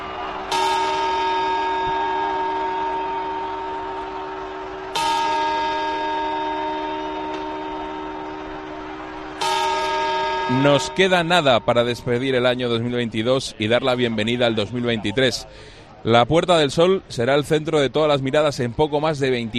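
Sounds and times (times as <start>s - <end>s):
clock tower bell chiming: 0.2s - 14.9s
speech: 10.5s - 19.5s.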